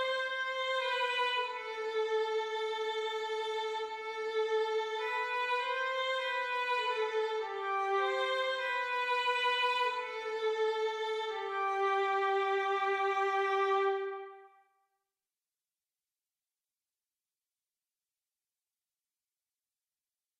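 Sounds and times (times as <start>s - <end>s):
violin: 0.0s - 14.6s.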